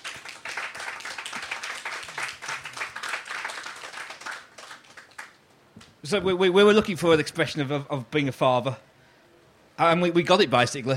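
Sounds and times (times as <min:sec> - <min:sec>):
crowd applauding: 0:00.0 - 0:05.4
speech: 0:06.0 - 0:08.9, 0:09.8 - 0:10.9.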